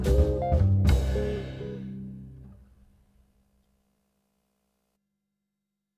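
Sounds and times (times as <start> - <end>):
C major and E-flat major chords: 0.1 - 2.5.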